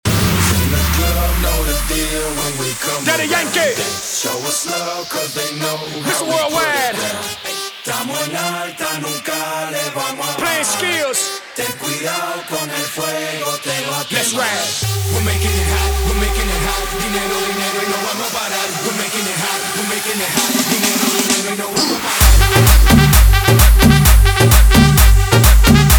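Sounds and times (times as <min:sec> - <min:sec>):
guaracha remix music: 0:00.0 - 0:25.9.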